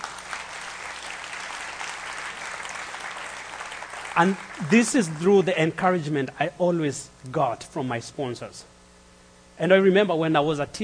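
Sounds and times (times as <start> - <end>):
audience applause: 0.0 - 5.3
speech: 4.2 - 8.7, 9.6 - 10.8.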